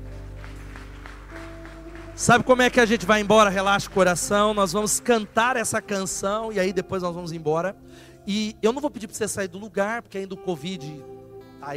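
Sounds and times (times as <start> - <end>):
audience applause: 0.0 - 5.3
speech: 2.2 - 11.7.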